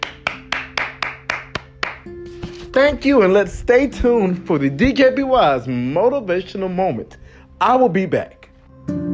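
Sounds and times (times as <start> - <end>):
round of applause: 0.0 - 2.1
speech: 2.8 - 9.0.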